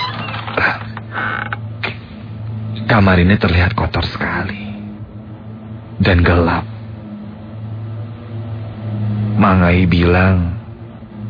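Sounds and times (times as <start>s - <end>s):
door creaking open into a dirty dark room: 0.0s - 1.7s
low steady hum: 0.0s - 11.2s
speech: 0.6s - 0.8s, 2.9s - 4.7s, 6.0s - 6.7s, 9.4s - 10.6s.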